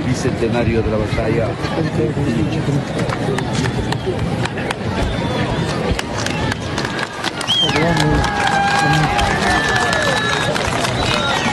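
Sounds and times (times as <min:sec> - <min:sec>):
speech: 0:00.2 - 0:04.4, 0:07.6 - 0:09.9
crowd booing: 0:04.9 - 0:11.5
group applauding: 0:05.9 - 0:11.5.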